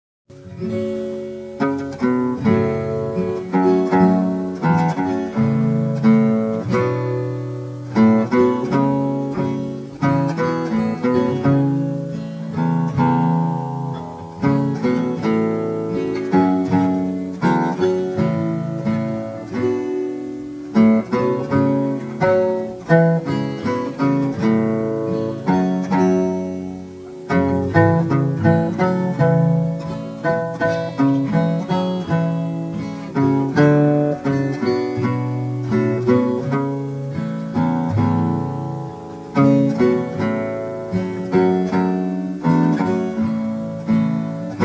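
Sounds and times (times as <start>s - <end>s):
oud melody: 0.4s - 44.6s.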